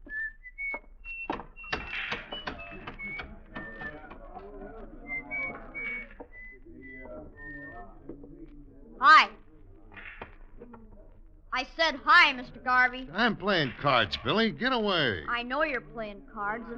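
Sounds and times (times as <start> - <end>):
man whistling a tune: 0.0 - 4.1, 5.0 - 8.0
speech: 11.8 - 16.7.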